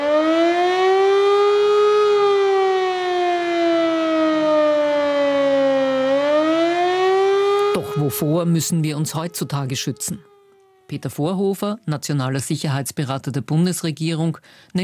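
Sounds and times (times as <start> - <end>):
civil defense siren test signal: 0.0 - 11.1
speech: 8.0 - 10.3, 10.9 - 14.8.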